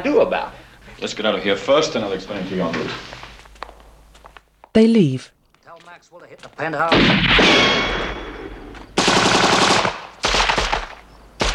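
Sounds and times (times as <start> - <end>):
speech: 0.0 - 3.2, 4.8 - 8.2
automatic gunfire as agents open fire on a sniper: 6.9 - 11.5.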